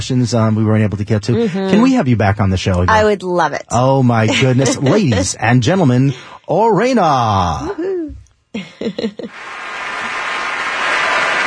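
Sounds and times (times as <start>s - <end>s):
speech: 0.0s - 9.6s
laughter: 1.2s - 2.4s, 4.1s - 6.2s, 8.6s - 9.4s
studio audience applause: 9.3s - 11.4s.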